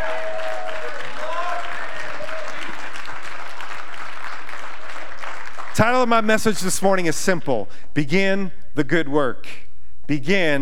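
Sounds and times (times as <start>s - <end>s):
audience clapping hands: 0.0s - 6.5s
speech: 5.8s - 10.6s.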